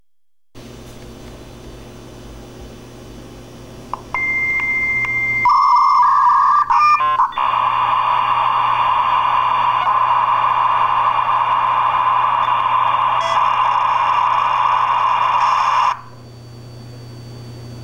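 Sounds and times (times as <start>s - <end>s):
modem: 0.6s - 17.8s.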